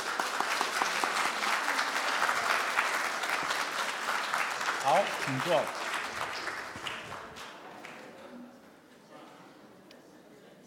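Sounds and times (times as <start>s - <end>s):
audience applause: 0.0s - 8.0s
speech: 4.9s - 5.8s.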